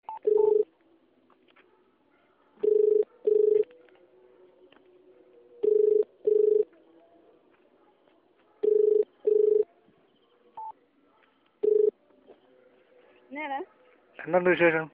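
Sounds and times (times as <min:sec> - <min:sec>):
Malayalam phone ringtone: 0:00.1 - 0:00.7, 0:02.6 - 0:03.7, 0:05.6 - 0:06.7, 0:08.6 - 0:09.6, 0:11.6 - 0:11.9.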